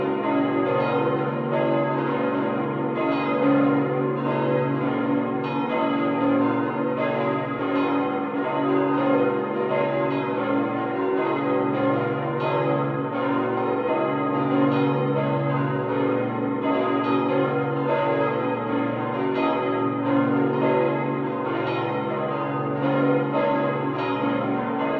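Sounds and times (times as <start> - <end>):
Ettal Abbey monastery bells ringing: 0.0 - 24.9.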